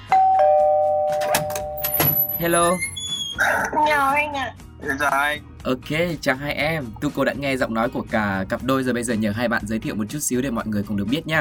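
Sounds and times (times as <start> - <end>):
doorbell ringing at a front door: 0.0 - 3.0
speech: 2.4 - 11.3.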